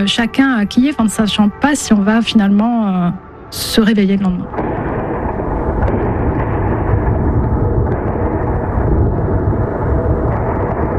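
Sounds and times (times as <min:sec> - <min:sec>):
speech: 0:00.0 - 0:04.8
air defense explosions intercepting drones or missiles: 0:04.4 - 0:10.9.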